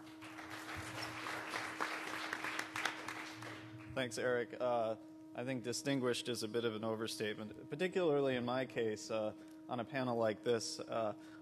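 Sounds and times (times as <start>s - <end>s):
audience clapping for a speaker: 0.0s - 4.0s
speech: 4.0s - 11.3s.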